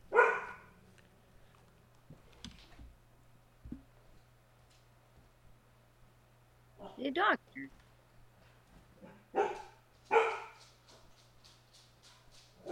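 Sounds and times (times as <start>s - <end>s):
dog barking: 0.1s - 0.8s, 9.0s - 10.6s
speech: 7.0s - 7.8s.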